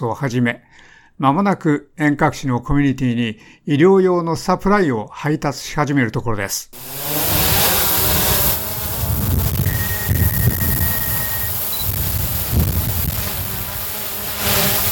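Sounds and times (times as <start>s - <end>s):
speech: 0.0s - 7.4s
drone flying and buzzing: 6.8s - 14.9s.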